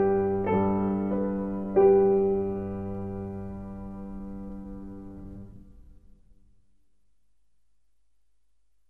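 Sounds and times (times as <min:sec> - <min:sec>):
slow tune: 0:00.0 - 0:06.3.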